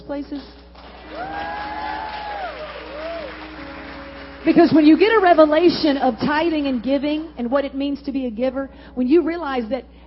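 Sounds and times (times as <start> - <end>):
speech: 0.1 - 2.2, 4.4 - 10.0
audience clapping and cheering: 0.7 - 7.7
whooping: 1.0 - 3.6.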